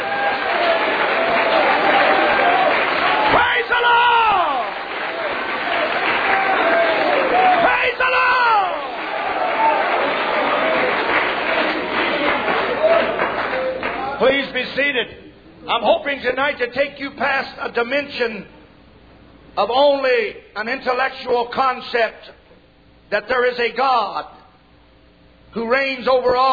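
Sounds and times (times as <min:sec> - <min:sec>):
audience clapping hands: 0:00.0 - 0:14.5
speech: 0:15.0 - 0:18.6, 0:19.6 - 0:22.4, 0:23.1 - 0:24.4, 0:25.5 - 0:26.5.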